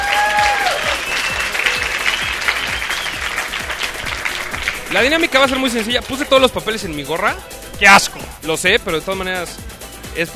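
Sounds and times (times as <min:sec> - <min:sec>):
applause: 0:00.0 - 0:06.4
speech: 0:05.0 - 0:10.3.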